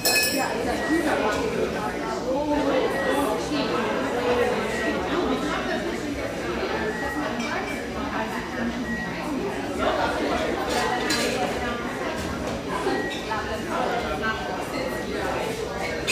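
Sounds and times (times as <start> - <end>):
glasses and dishes clinking: 0.0 - 0.6, 10.7 - 11.4
chatter of many voices in a busy bar frequented by railyard staff: 0.0 - 16.1.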